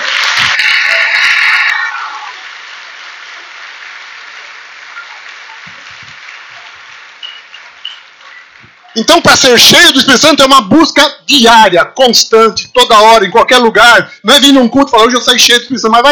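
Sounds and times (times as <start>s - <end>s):
audience applause: 0.0s - 9.2s
speech: 9.0s - 16.0s.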